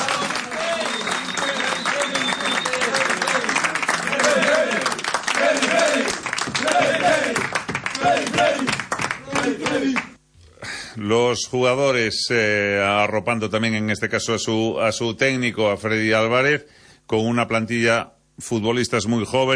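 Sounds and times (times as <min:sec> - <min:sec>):
applause: 0:00.0 - 0:10.2
speech: 0:11.0 - 0:19.5.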